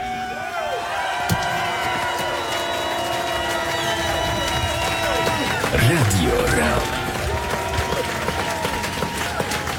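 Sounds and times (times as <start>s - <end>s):
audience applause: 0.7s - 9.7s
crowd murmur: 5.0s - 9.7s
speech: 5.7s - 7.0s.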